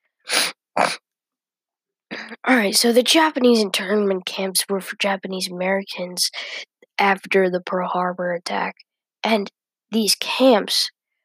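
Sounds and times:
sniffs through a congested nose: 0.2s - 1.0s
speech: 0.8s - 1.0s, 2.5s - 11.0s.

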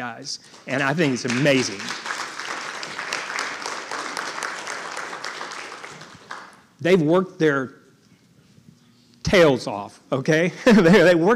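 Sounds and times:
speech: 0.0s - 2.1s, 6.8s - 7.8s, 9.3s - 11.3s
audience applauding: 0.6s - 6.7s.

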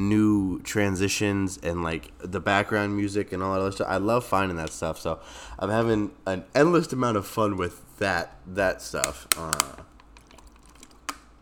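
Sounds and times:
speech: 0.0s - 9.9s
plastic water bottle crackling: 9.0s - 11.4s.

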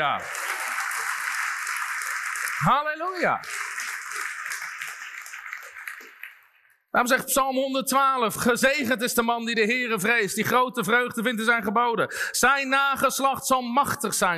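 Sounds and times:
speech: 0.0s - 0.5s, 2.6s - 3.6s, 6.9s - 14.3s
audience applause: 0.0s - 6.8s.

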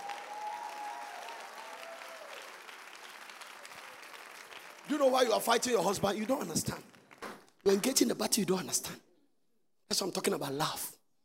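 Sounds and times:
audience applause: 0.0s - 7.2s
speech: 4.9s - 7.0s, 7.6s - 9.0s, 9.9s - 11.0s.

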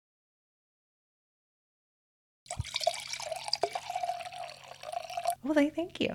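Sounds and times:
wine being poured into a glass: 2.5s - 5.4s
speech: 5.4s - 6.1s.

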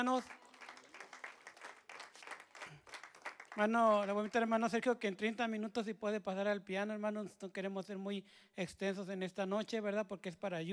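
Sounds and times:
speech: 0.0s - 0.4s, 3.6s - 10.7s
audience applause: 0.0s - 4.4s.

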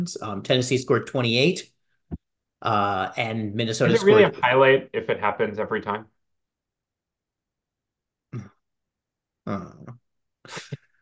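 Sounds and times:
speech: 0.0s - 1.7s, 2.6s - 6.2s, 9.5s - 10.8s
disappointed grunt: 8.3s - 8.6s, 9.4s - 10.0s.

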